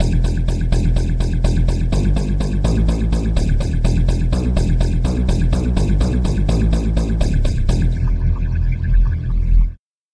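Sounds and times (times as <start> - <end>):
chiff lead synth bass: 0.0 - 9.8.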